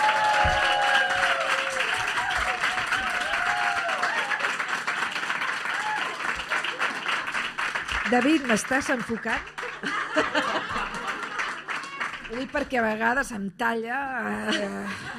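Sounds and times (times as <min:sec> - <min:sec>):
audience applause: 0:00.0 - 0:12.9
speech: 0:08.1 - 0:11.0, 0:12.3 - 0:15.1
laughter: 0:09.6 - 0:12.0, 0:14.4 - 0:15.1.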